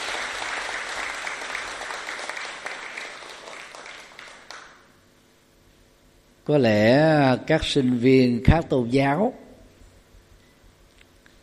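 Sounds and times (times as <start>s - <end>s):
crowd applauding: 0.0s - 4.9s
speech: 6.5s - 9.4s.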